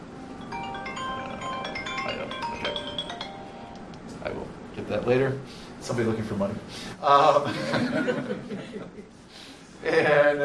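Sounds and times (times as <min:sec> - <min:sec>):
emergency phone ringing: 0:00.2 - 0:03.9
speech: 0:04.8 - 0:09.1, 0:09.8 - 0:10.4
laughter: 0:07.2 - 0:09.1.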